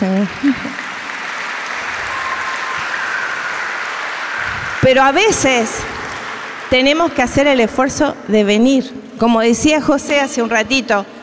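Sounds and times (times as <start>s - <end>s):
audience applause: 0.0s - 7.8s
speech: 0.2s - 0.9s, 4.8s - 5.9s, 6.7s - 11.2s.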